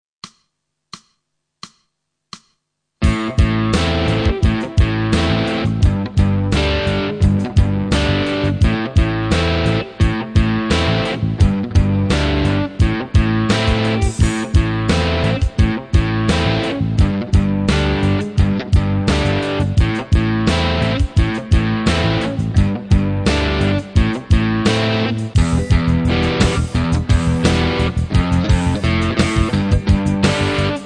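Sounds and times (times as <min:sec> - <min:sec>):
rock metal drum beat and hits: 0:03.0 - 0:30.8.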